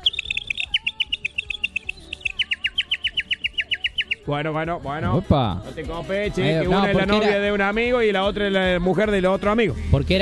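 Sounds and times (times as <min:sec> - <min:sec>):
bird chirping sound effect: 0:00.0 - 0:04.4
speech: 0:04.2 - 0:10.2.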